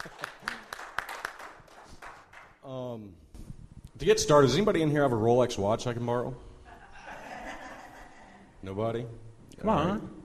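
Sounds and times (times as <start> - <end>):
laughter: 0.0 - 0.8, 6.7 - 8.5
scattered hand claps from a small crowd: 0.0 - 2.6
speech: 4.0 - 6.5, 8.6 - 10.2.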